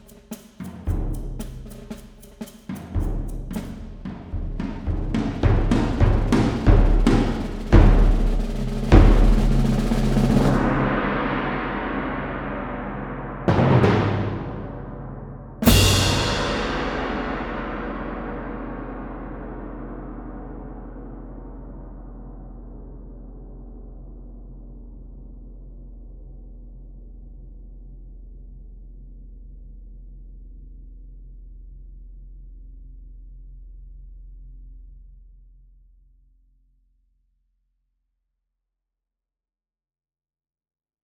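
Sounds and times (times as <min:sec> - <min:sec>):
percussion: 0:00.0 - 0:23.2.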